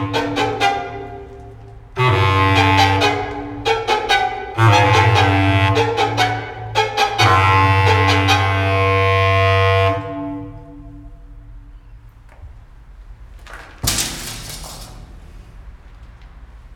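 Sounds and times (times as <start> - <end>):
tunnel noises in a tunnel: 0.0 - 16.7.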